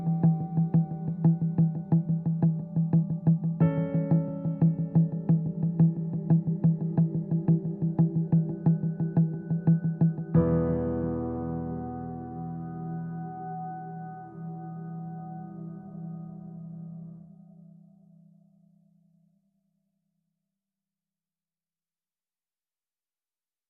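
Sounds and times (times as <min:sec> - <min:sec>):
piano: 0:00.0 - 0:18.4.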